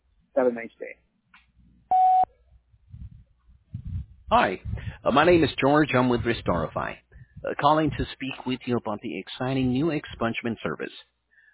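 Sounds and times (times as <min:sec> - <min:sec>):
speech: 0:00.4 - 0:01.1, 0:04.3 - 0:11.1
voicemail beep: 0:01.9 - 0:02.3, 0:09.6 - 0:10.0
low rumbling: 0:02.7 - 0:08.4.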